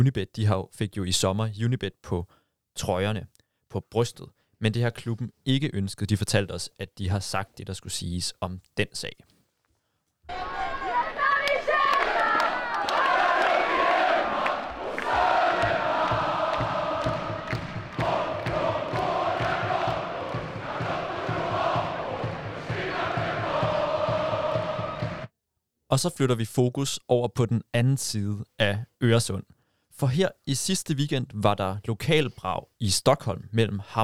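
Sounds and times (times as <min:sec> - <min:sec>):
speech: 0:00.0 - 0:09.3, 0:25.9 - 0:34.0
football stadium crowd cheering: 0:10.3 - 0:25.3.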